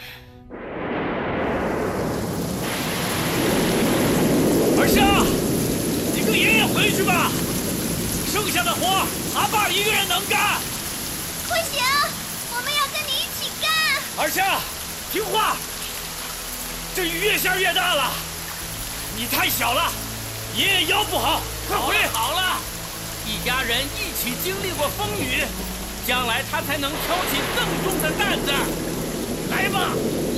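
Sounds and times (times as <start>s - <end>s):
thunder: 0.4s - 11.4s, 26.8s - 30.3s
heavy rain: 0.4s - 30.3s.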